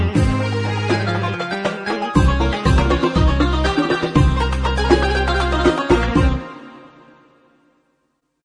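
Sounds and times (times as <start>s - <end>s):
Arabic masmoudi rhythm pattern on Korg Pa80 keyboard: 0.0s - 6.5s.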